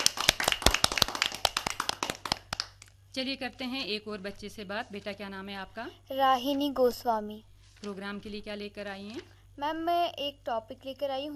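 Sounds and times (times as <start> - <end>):
group of children clapping: 0.0 - 2.9
speech: 3.2 - 11.3.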